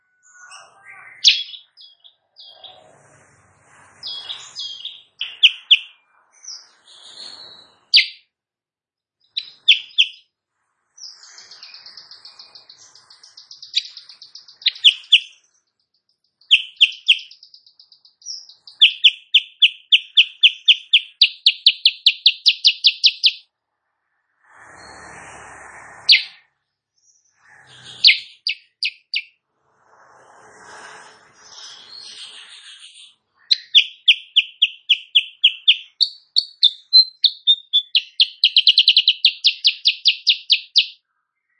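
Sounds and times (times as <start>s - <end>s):
Sooty-headed bulbul song: 0.0s - 2.7s, 4.0s - 8.2s, 9.3s - 10.2s, 11.0s - 15.5s, 16.4s - 23.5s, 26.0s - 26.4s, 27.8s - 29.3s, 33.4s - 41.0s.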